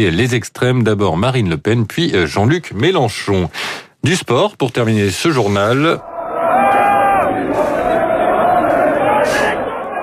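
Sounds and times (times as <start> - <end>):
speech: 0.0 - 6.1
football supporters' crowd celebrating in the grande place de Lille: 5.9 - 10.0.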